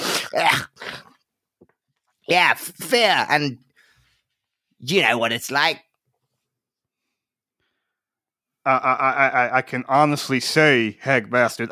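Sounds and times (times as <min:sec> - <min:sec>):
voice imitating hawking and spitting: 0:00.0 - 0:01.2
speech: 0:02.3 - 0:03.7, 0:04.8 - 0:05.9, 0:08.7 - 0:11.7.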